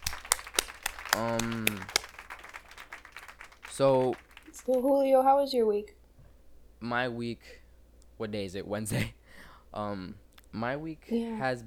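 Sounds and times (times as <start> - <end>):
people clapping: 0.0 - 5.2
speech: 1.2 - 2.0, 3.8 - 6.0, 6.8 - 7.6, 8.2 - 11.6.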